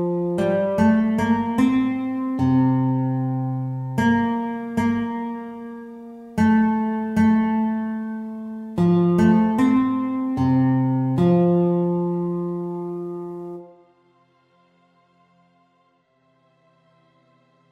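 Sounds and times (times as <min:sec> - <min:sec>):
acoustic guitar piece: 0:00.0 - 0:13.9.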